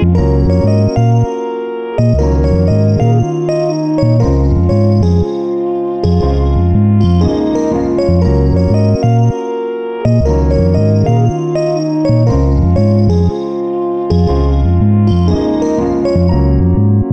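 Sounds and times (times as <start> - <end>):
music without drums: 0.0 - 17.1.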